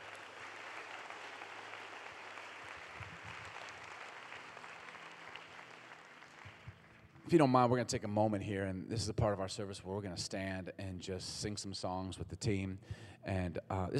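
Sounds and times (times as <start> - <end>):
audience applause: 0.0 - 7.2
speech: 7.3 - 13.9.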